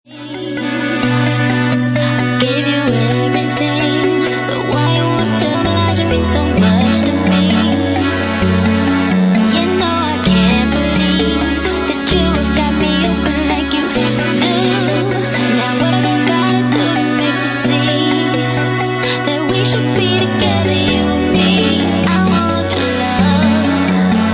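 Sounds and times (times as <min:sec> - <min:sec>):
UK funky music: 0:00.0 - 0:24.3.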